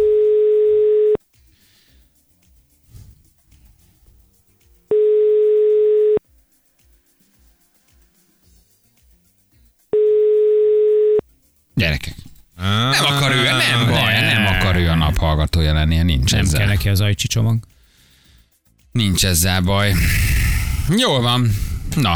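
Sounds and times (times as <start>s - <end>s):
telephone ringback tone: 0.0s - 1.2s, 4.9s - 6.2s, 10.0s - 11.2s
laughter: 12.6s - 16.6s
speech: 15.6s - 17.8s, 18.9s - 22.1s.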